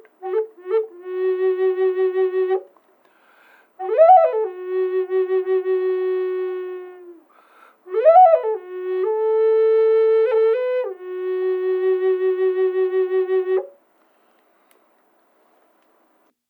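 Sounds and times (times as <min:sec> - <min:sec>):
palo santo flutes playing in F sharp minor: 0:00.0 - 0:02.7, 0:03.8 - 0:13.8.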